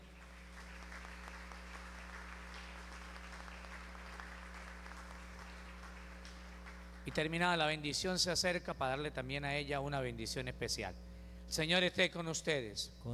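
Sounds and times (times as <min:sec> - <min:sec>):
applause for a child: 0:00.0 - 0:07.7
speech: 0:07.1 - 0:13.1.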